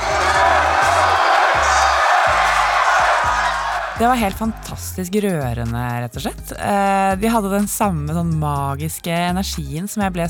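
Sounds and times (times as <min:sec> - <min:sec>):
concert crowd cheering: 0:00.0 - 0:04.8
speech: 0:04.0 - 0:10.2.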